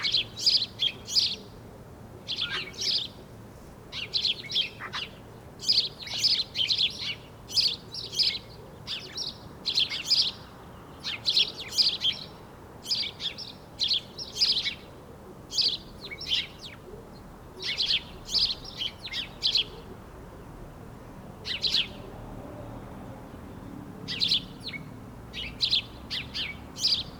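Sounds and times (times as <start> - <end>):
house sparrow chirping: 0.0 - 1.6, 2.3 - 3.2, 3.9 - 14.9, 15.5 - 16.8, 17.6 - 19.9, 21.5 - 22.1, 24.1 - 27.1.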